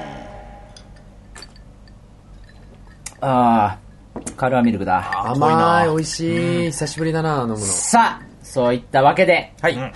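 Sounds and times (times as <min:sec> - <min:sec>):
low steady hum: 0:00.0 - 0:09.9
glasses clinking in a toast: 0:00.7 - 0:03.3, 0:04.9 - 0:08.4
speech: 0:03.2 - 0:03.8, 0:04.4 - 0:09.9.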